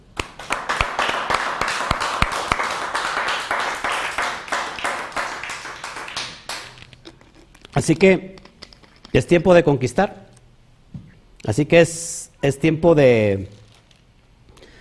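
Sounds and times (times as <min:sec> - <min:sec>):
audience applauding: 0:00.2 - 0:06.8
speech: 0:07.8 - 0:08.4, 0:09.2 - 0:10.2, 0:11.4 - 0:13.6.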